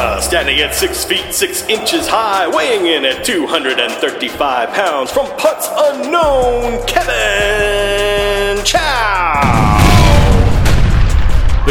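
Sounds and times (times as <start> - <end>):
speech: 0.3 - 9.7
pyrotechnic explosion boom: 9.4 - 11.6.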